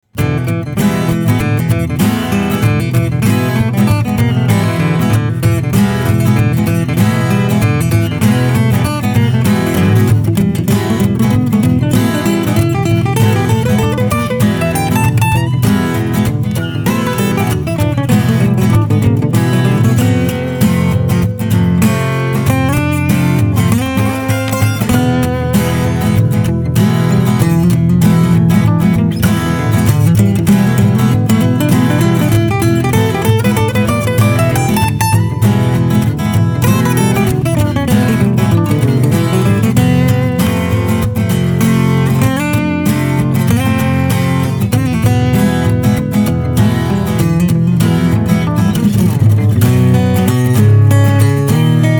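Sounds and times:
acoustic music: 0:00.0 - 0:51.9.

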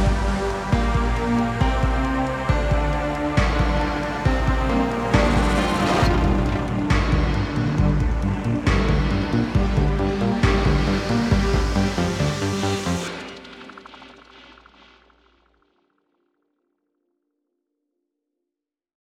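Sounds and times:
combat music: 0:00.0 - 0:14.4.

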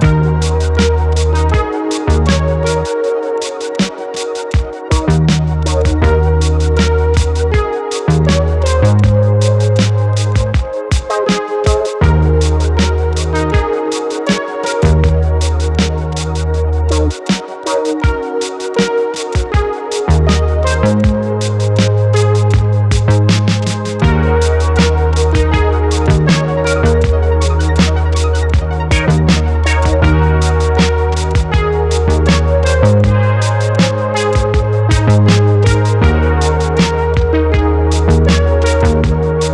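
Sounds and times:
menu music loop: 0:00.0 - 0:39.5.

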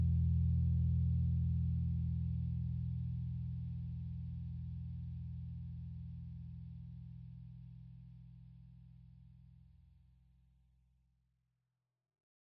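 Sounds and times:
bass line: 0:00.0 - 0:07.3.

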